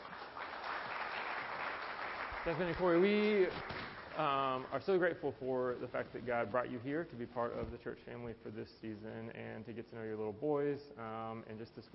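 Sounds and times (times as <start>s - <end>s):
church audience applause: 0.0s - 4.7s
speech: 2.4s - 11.9s.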